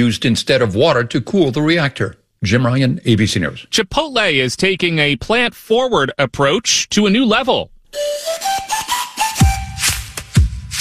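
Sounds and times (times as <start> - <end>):
speech: 0.0 - 8.8
breathy flute made from corn playing a wavering melody: 7.9 - 10.2.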